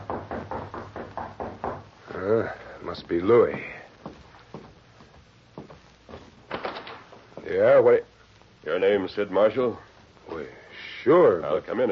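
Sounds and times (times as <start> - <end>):
light knock on a door: 0.0 - 1.9
speech: 2.2 - 3.8, 7.6 - 8.1, 8.7 - 11.9.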